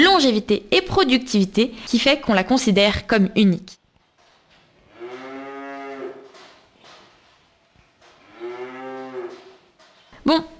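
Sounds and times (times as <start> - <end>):
speech: 0.0 - 3.8, 10.2 - 10.5
Montbéliarde cow mooing: 4.8 - 6.4, 8.2 - 9.7.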